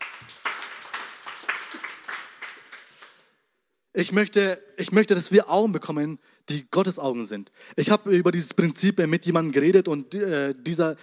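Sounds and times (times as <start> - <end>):
audience applause: 0.0 - 3.2
speech: 4.0 - 11.0.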